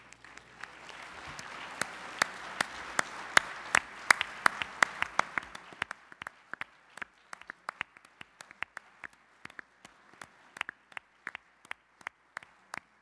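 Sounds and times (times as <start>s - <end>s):
audience applause: 0.0s - 12.9s.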